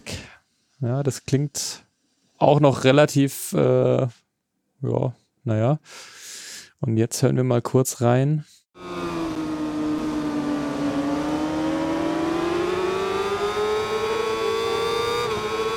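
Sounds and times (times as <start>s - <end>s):
speech: 0.8s - 4.2s, 4.8s - 6.2s, 6.8s - 8.9s
motorcycle engine revving in racing video game: 8.8s - 15.7s.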